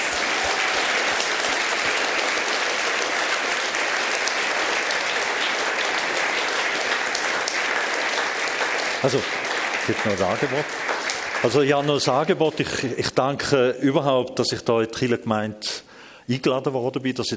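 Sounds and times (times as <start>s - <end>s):
audience applause: 0.0s - 12.9s
speech: 9.0s - 17.3s.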